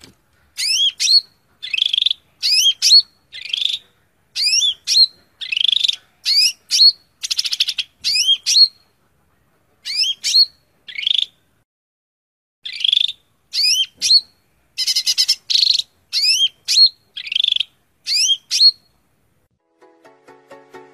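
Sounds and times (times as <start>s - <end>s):
Greater green leafbird song: 0.6s - 8.8s, 9.8s - 11.5s, 12.6s - 19.0s.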